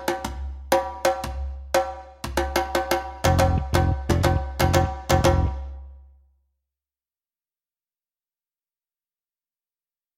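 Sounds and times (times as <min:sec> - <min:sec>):
drums: 0:00.0 - 0:05.7
bass: 0:03.2 - 0:06.0.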